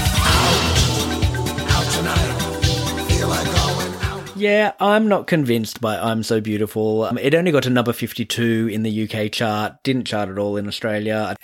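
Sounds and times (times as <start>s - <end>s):
dance track: 0.0s - 4.4s
orchestral stabs: 0.0s - 4.4s
speech: 4.4s - 11.4s.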